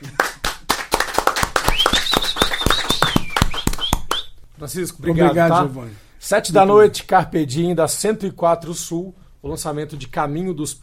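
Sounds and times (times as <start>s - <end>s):
audience applause: 0.0s - 4.2s
speech: 4.6s - 10.8s.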